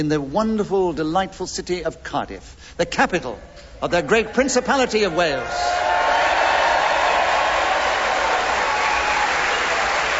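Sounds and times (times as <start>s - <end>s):
speech: 0.0s - 6.0s
Welsh audience cheering: 4.9s - 10.1s.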